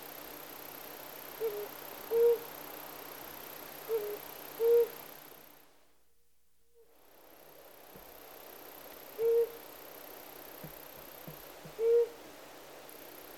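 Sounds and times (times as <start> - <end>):
Flammulated Owl Psiloscops flammeolus calling: 1.4 - 2.5, 3.9 - 5.0, 9.2 - 9.6, 11.7 - 12.2.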